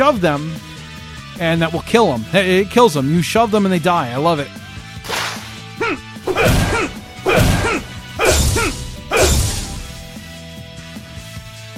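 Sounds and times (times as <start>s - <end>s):
speech: 0.0s - 0.7s, 1.4s - 4.6s
video game sword thwacking impacts: 5.0s - 10.2s
video game sword swings: 6.3s - 10.2s.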